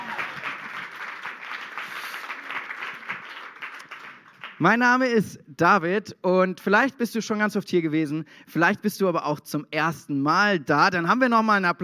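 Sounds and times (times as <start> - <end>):
audience clapping: 0.0 - 5.0
speech: 4.6 - 11.8.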